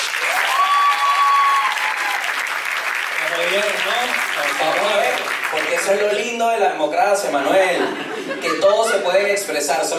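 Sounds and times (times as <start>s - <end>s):
audience applause: 0.0s - 6.4s
speech: 4.4s - 9.9s
laughter: 7.2s - 9.4s.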